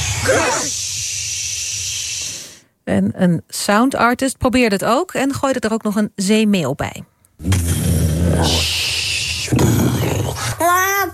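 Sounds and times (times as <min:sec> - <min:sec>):
choir imitating the sea: 0:00.2 - 0:00.8
speech: 0:03.0 - 0:07.7, 0:08.3 - 0:11.1.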